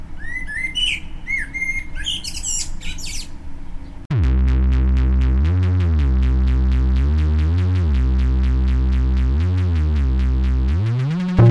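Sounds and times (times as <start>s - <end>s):
Eurasian blackbird singing: 0.2s - 4.0s
electronic tone: 4.1s - 11.5s
low steady rumble: 4.1s - 11.5s.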